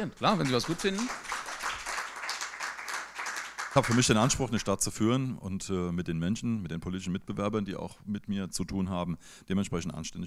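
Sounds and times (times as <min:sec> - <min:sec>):
speech: 0:00.0 - 0:01.4, 0:03.7 - 0:10.2
audience clapping: 0:00.2 - 0:04.7.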